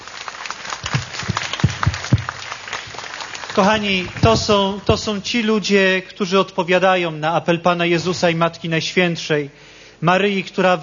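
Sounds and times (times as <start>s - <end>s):
applause: 0.0s - 5.2s
speech: 3.6s - 10.8s.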